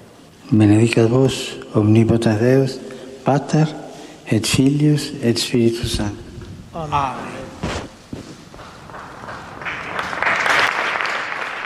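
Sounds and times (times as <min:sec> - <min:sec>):
speech: 0:00.5 - 0:07.4
large crowd applauding: 0:08.6 - 0:11.6.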